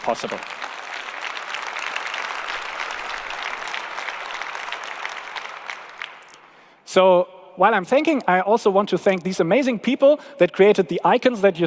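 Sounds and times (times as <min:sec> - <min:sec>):
speech: 0:00.0 - 0:00.6, 0:06.9 - 0:11.6
audience applause: 0:00.0 - 0:06.6.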